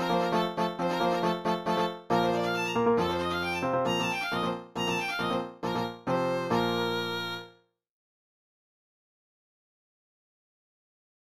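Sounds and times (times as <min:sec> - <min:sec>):
violin: 0:00.0 - 0:07.5.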